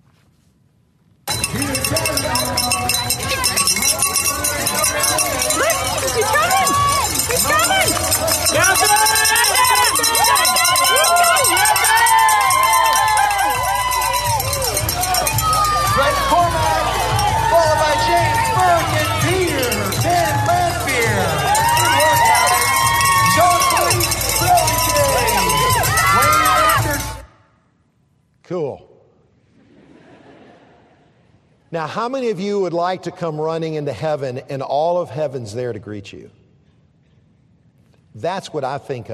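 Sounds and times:
crowd cheering runner at race finish line: 1.3s - 27.3s
laughter: 29.5s - 31.3s
speech: 31.8s - 36.4s, 38.2s - 39.1s.

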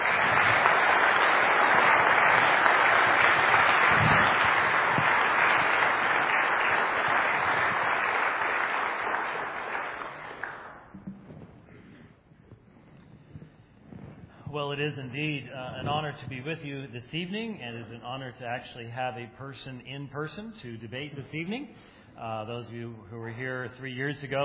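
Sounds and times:
audience applause: 0.0s - 10.9s
speech: 14.8s - 24.4s.

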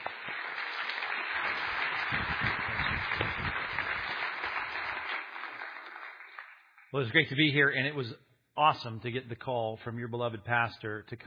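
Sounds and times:
audience applause greeting a preacher at a church conference: 0.0s - 6.9s
speech: 6.9s - 11.2s.

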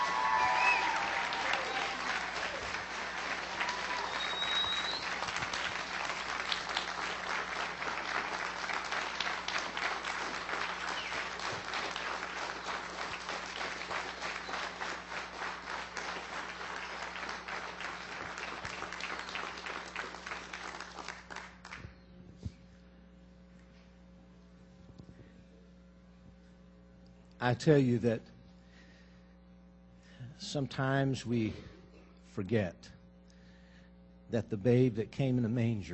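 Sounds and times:
audience applause for a choir: 0.0s - 21.8s
speech: 27.4s - 28.3s, 30.5s - 31.7s, 32.4s - 32.8s, 34.3s - 35.9s.

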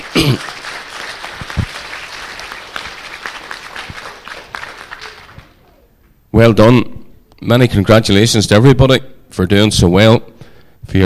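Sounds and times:
applause: 0.0s - 5.7s
speech: 6.4s - 10.3s.

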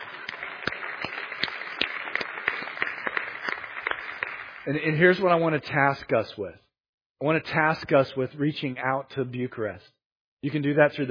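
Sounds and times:
audience applause: 0.0s - 5.0s
speech: 4.7s - 6.6s, 7.2s - 11.0s.

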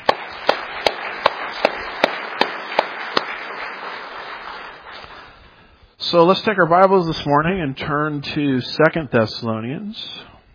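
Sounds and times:
audience applauding: 0.0s - 5.6s
speech: 6.1s - 10.3s.

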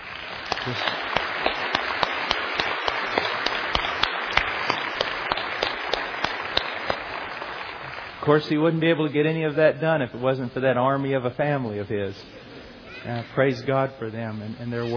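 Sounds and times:
crowd applauding: 0.0s - 9.2s
speech: 0.6s - 1.0s, 8.3s - 12.4s, 13.0s - 14.9s.

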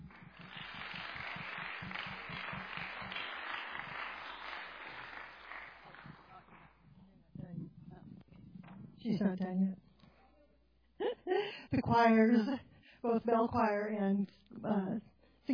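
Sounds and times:
audience applause: 0.0s - 6.8s
speech: 9.1s - 9.8s, 11.7s - 15.5s.

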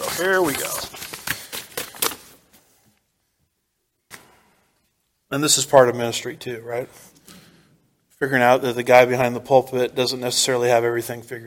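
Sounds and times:
page turning: 0.0s - 3.0s
sheets of paper rustling: 0.0s - 3.0s
speech: 0.2s - 0.9s, 5.3s - 7.2s, 8.2s - 11.4s.

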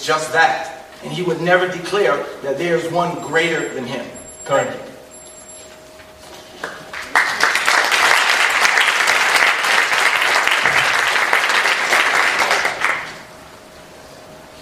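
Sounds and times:
speech: 0.0s - 4.8s
audience applause: 6.6s - 13.2s.

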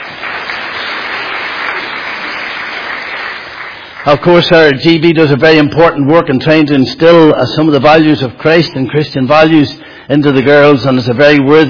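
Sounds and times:
audience applause: 0.0s - 4.7s
speech: 4.0s - 11.6s.

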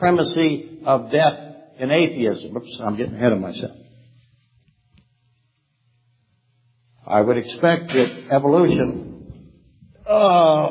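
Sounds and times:
speech: 0.0s - 3.8s, 7.1s - 9.1s, 10.1s - 10.6s
person groaning while bending over: 10.0s - 10.6s.

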